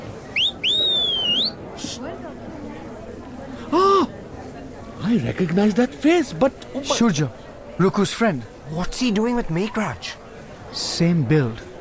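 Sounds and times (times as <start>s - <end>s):
person whistling: 0.4s - 1.6s
speech: 5.1s - 11.7s.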